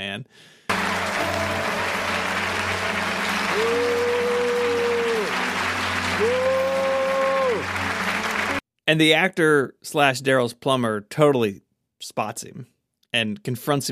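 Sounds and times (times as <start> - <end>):
speech: 0.0 - 1.8, 3.6 - 3.9, 8.9 - 13.8
audience applauding: 0.7 - 8.6.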